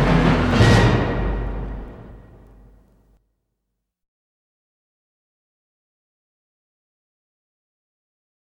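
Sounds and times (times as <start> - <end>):
timpani: 0.0 - 3.1.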